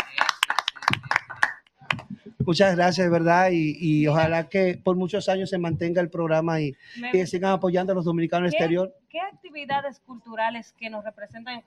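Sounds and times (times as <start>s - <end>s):
small group clapping: 0.0s - 2.3s
speech: 2.4s - 11.6s.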